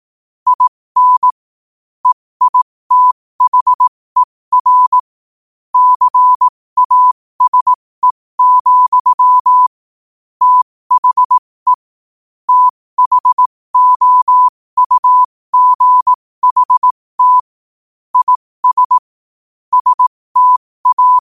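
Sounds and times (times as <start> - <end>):
morse code at 5 wpm: 0.5 - 1.3, 2.0 - 5.0, 5.8 - 7.8, 8.4 - 9.7, 10.4 - 11.9, 12.5 - 17.5, 18.2 - 19.0, 19.7 - 21.2.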